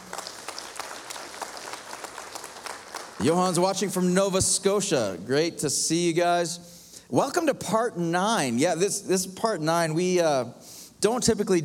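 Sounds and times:
audience applause: 0.0s - 3.6s
speech: 3.2s - 11.6s.

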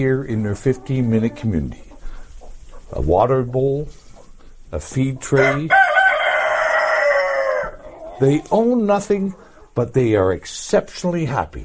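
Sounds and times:
speech: 0.0s - 1.9s, 2.9s - 4.0s, 4.7s - 6.0s, 8.2s - 11.6s
many chickens clucking: 0.0s - 11.4s
rooster crowing: 5.4s - 8.0s.

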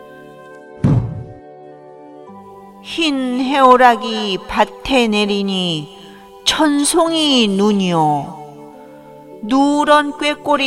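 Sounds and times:
monk's wooden staff striking the floor: 0.8s - 1.4s
speech: 2.8s - 8.4s, 9.4s - 10.6s.

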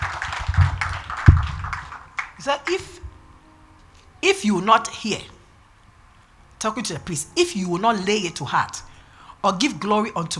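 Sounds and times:
crowd of people clapping their hands: 0.0s - 3.0s
loud thump: 0.5s - 1.7s
speech: 2.4s - 3.0s, 4.2s - 5.4s, 6.6s - 10.3s.

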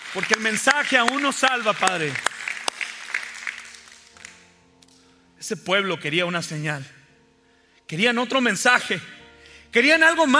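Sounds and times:
audience applause: 0.0s - 4.4s
speech: 0.1s - 2.3s, 5.4s - 7.0s, 7.9s - 10.3s.

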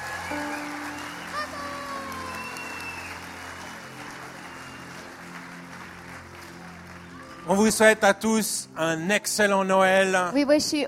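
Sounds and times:
audience applause: 0.0s - 8.2s
speech: 7.5s - 10.8s.

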